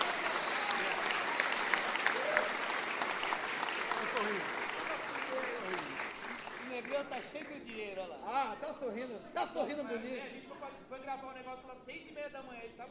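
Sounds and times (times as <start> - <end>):
audience applause: 0.0 - 7.6
speech: 7.0 - 12.8.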